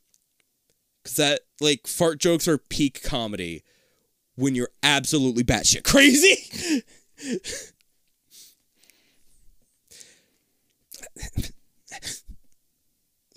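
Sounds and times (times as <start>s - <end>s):
speech: 1.0s - 3.8s, 4.4s - 7.8s
person sniffing: 6.5s - 7.7s, 8.3s - 9.2s, 11.0s - 12.4s.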